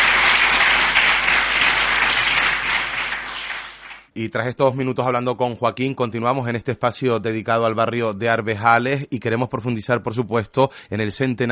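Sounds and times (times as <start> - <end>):
audience applause: 0.0 - 4.1
speech: 4.2 - 11.5.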